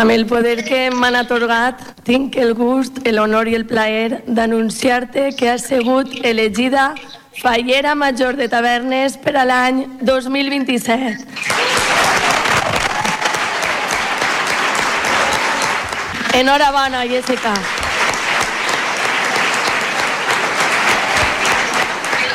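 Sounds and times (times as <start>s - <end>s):
speech: 0.0s - 11.8s, 16.4s - 17.8s
applause: 11.4s - 22.3s.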